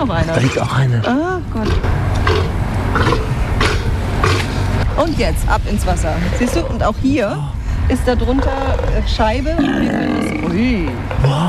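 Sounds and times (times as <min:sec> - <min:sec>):
speech: 0:00.0 - 0:03.3, 0:05.0 - 0:11.4
South American sea lion vocalizing: 0:01.4 - 0:04.6, 0:06.2 - 0:07.0, 0:08.2 - 0:11.4.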